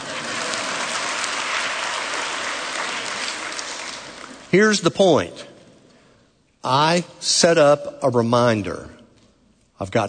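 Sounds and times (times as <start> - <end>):
crowd applauding: 0.0 - 4.5
speech: 4.5 - 5.5, 6.6 - 9.0, 9.8 - 10.0.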